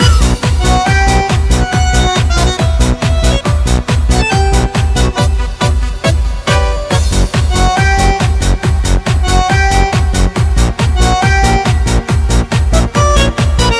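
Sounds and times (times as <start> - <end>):
tango remix music: 0.0 - 13.7.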